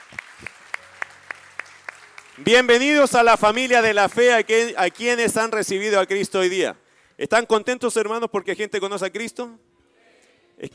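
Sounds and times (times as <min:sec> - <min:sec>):
audience clapping: 0:00.0 - 0:06.3
speech: 0:02.4 - 0:09.6, 0:10.6 - 0:10.7.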